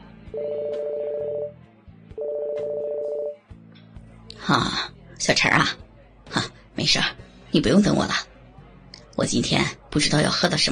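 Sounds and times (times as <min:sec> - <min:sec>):
speech: 0:00.3 - 0:00.8, 0:04.5 - 0:08.3, 0:09.2 - 0:10.6
telephone ringing: 0:00.4 - 0:01.6, 0:02.2 - 0:03.4.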